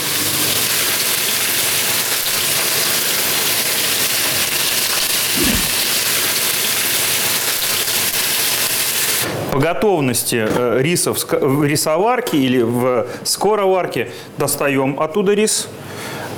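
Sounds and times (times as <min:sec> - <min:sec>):
fish sizzling in a hot pan: 0:00.0 - 0:09.2
speech: 0:09.6 - 0:16.1.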